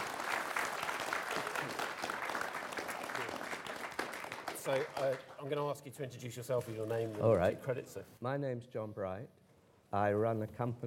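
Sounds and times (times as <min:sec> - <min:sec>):
round of applause: 0:00.0 - 0:05.5
speech: 0:04.7 - 0:10.8.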